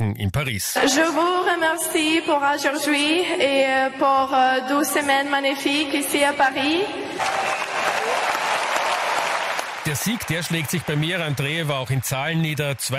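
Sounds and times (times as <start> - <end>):
speech: 0.2 - 7.5, 9.9 - 12.9
audience applause: 7.2 - 12.9.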